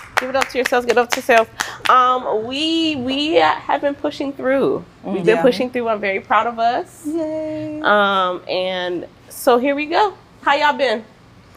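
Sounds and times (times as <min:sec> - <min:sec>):
hosts clapping for themselves: 0:00.0 - 0:02.0
speech: 0:00.2 - 0:11.1
lively voices talking and exclaiming: 0:02.4 - 0:10.2.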